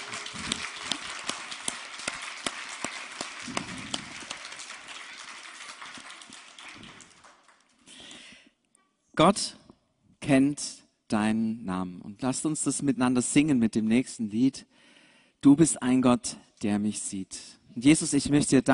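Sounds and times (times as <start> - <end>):
audience applause: 0.0 - 7.8
speech: 9.2 - 9.6, 10.3 - 18.7.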